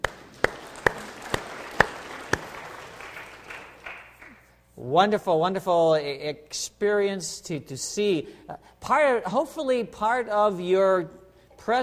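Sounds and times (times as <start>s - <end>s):
audience clapping: 0.0s - 4.5s
speech: 4.8s - 11.8s.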